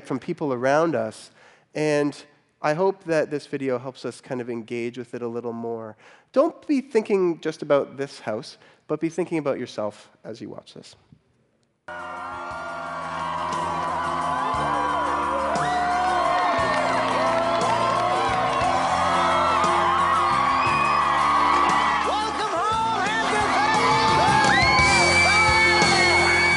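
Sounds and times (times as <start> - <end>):
speech: 0.1 - 11.1
crowd cheering: 11.9 - 26.5.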